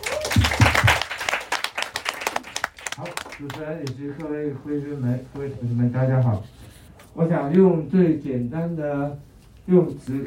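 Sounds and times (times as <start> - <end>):
audience applause: 0.0 - 3.6
speech: 3.4 - 6.6, 7.2 - 10.2.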